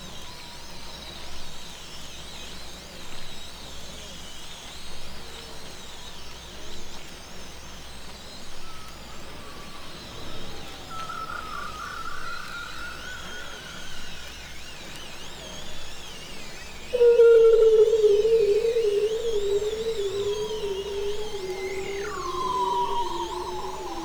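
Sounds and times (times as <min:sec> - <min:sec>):
bearded seal calling: 0:17.0 - 0:24.0.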